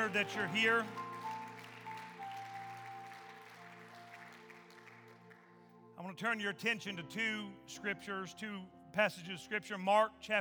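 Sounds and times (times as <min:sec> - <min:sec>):
speech: 0:00.0 - 0:01.0, 0:06.0 - 0:10.4
audience applauding: 0:00.0 - 0:06.0.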